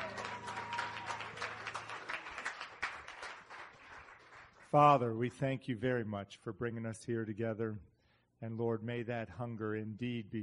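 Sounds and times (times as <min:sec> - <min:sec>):
audience clapping and cheering: 0:00.0 - 0:05.0
speech: 0:04.7 - 0:10.4.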